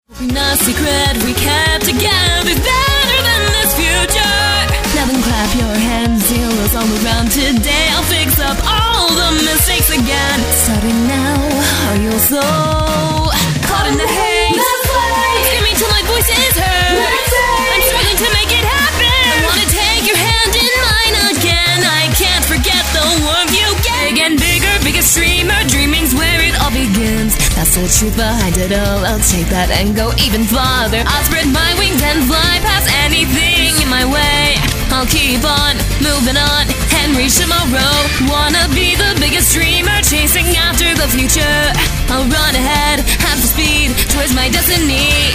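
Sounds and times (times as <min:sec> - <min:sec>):
person singing: 0:00.1 - 0:45.3.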